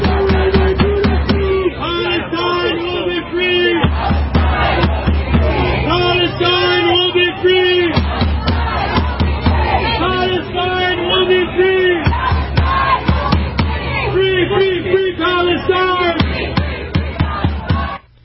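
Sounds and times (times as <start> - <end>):
overlapping shouts and voices: 0.0 - 18.0
large crowd of protesters chanting a slogan in unison: 0.0 - 18.1.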